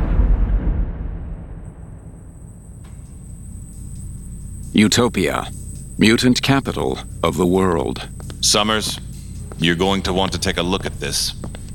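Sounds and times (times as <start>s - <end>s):
lightning crack and deep heavy rumble of thunder: 0.0s - 3.1s
speech: 4.7s - 11.6s.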